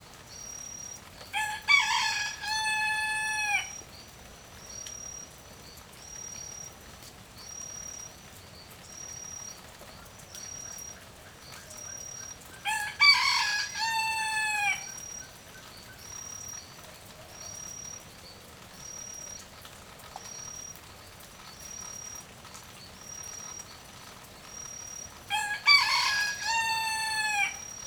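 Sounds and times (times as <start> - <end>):
rooster crowing in light rain: 1.3 - 3.8, 12.6 - 15.2, 25.3 - 27.8.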